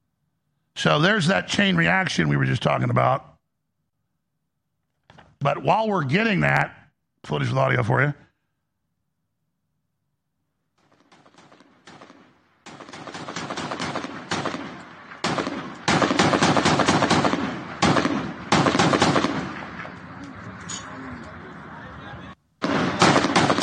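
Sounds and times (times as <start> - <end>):
speech: 0.8 - 3.3, 5.4 - 8.2
small arms fire aimed at helicopters: 10.8 - 20.2, 22.6 - 23.6.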